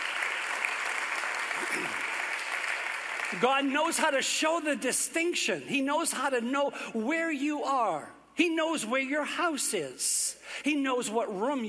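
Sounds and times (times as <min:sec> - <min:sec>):
audience hand clapping: 0:00.0 - 0:04.0
speech: 0:01.8 - 0:02.1, 0:03.3 - 0:11.6.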